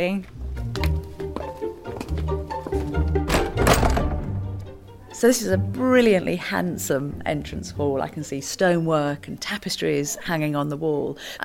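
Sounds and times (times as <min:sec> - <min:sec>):
speech: 0:00.0 - 0:00.9, 0:05.2 - 0:11.4
heavy front door closing thunk: 0:03.1 - 0:04.4
rattling: 0:03.3 - 0:04.2.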